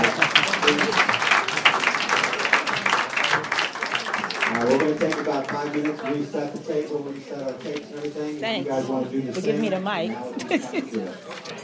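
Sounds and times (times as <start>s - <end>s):
laughter: 0.0s - 3.0s, 9.6s - 11.6s
audience applause: 0.0s - 7.5s
speech: 0.7s - 1.1s, 5.3s - 11.6s.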